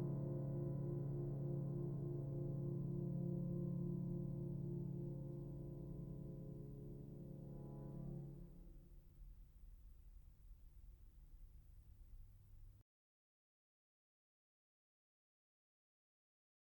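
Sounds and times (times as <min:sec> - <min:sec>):
contemporary music: 0:00.0 - 0:08.6.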